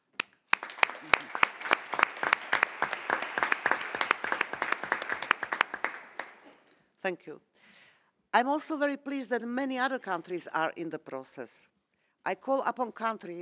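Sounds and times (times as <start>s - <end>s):
audience applause: 0.5s - 6.4s
speech: 7.0s - 7.5s, 8.4s - 13.4s.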